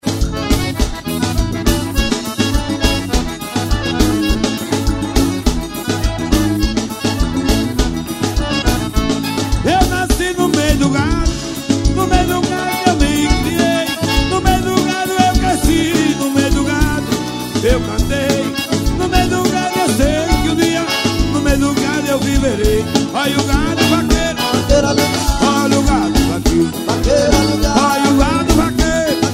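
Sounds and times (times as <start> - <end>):
accordion: 0.0 - 29.3.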